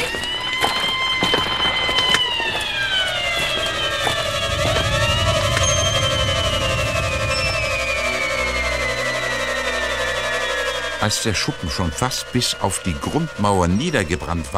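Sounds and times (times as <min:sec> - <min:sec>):
fire engine siren wailing: 0:00.0 - 0:14.5
speech: 0:11.0 - 0:14.5.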